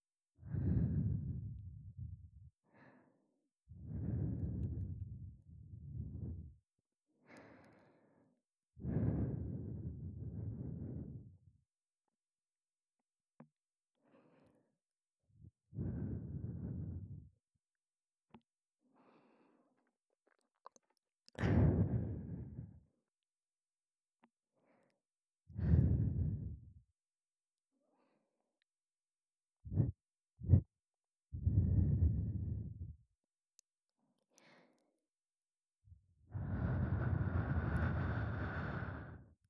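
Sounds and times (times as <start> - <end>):
breathing in the left channel: 0.4 - 6.6, 7.2 - 11.5, 14.0 - 14.8, 15.7 - 17.4, 18.9 - 19.9, 21.4 - 22.9, 24.6 - 26.8, 27.8 - 28.5, 29.7 - 30.7, 31.3 - 33.0, 34.2 - 34.9, 36.2 - 39.4.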